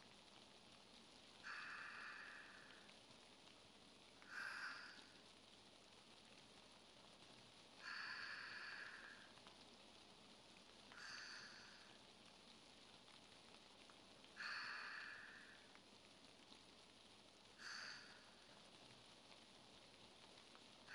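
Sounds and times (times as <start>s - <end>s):
person breathing in sleep: 1.4s - 2.9s, 4.2s - 5.2s, 7.8s - 9.3s, 10.9s - 12.0s, 14.4s - 15.7s, 17.6s - 18.4s.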